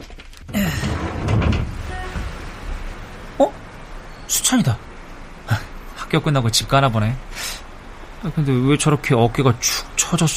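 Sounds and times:
restaurant window sliding wide open: 0:00.6 - 0:03.3
speech: 0:04.4 - 0:04.9, 0:06.1 - 0:07.5, 0:08.2 - 0:10.3.

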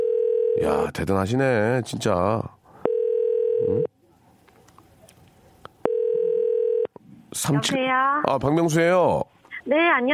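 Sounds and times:
steady mid-pitched electronic telephone tone: 0:00.0 - 0:00.6, 0:02.9 - 0:03.9, 0:05.9 - 0:06.9
speech: 0:00.6 - 0:02.6, 0:03.6 - 0:03.9, 0:07.3 - 0:10.1.

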